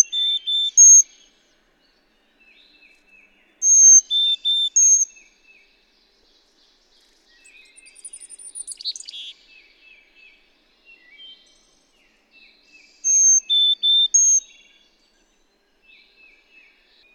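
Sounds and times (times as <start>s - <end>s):
bird song phrase of clear whistled notes: 0.0s - 1.4s, 2.4s - 5.7s, 7.3s - 17.1s.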